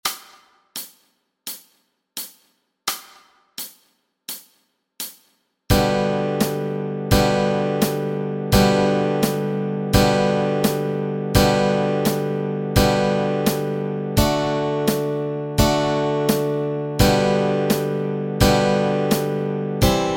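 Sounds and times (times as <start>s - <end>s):
easy guitar chords: 5.7s - 20.1s.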